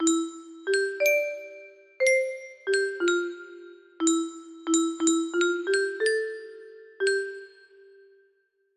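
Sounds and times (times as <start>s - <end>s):
music box melody: 0.0s - 8.1s.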